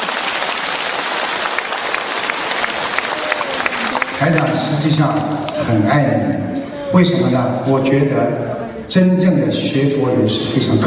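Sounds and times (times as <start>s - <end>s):
audience applause during a Buddhist teaching session: 0.0s - 7.0s
speech: 4.2s - 10.8s.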